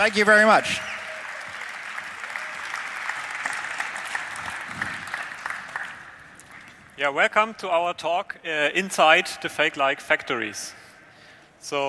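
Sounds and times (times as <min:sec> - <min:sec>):
speech: 0:00.0 - 0:01.0, 0:07.0 - 0:10.8, 0:11.6 - 0:11.8
conference audience applauding speakers onto the stage: 0:00.0 - 0:06.9.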